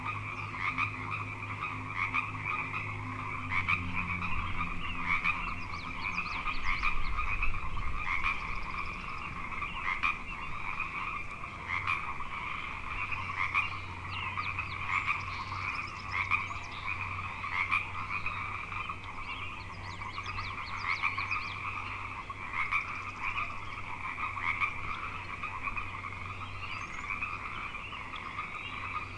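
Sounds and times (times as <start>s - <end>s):
frog chorus trilling: 0.0s - 29.1s.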